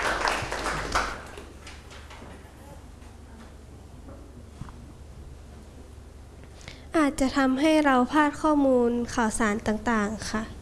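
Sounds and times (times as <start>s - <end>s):
applause: 0.0s - 2.2s
speech: 7.0s - 10.5s.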